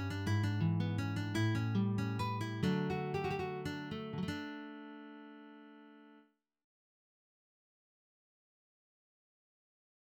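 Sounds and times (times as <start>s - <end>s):
romantic guitar waltz: 0.0s - 6.2s.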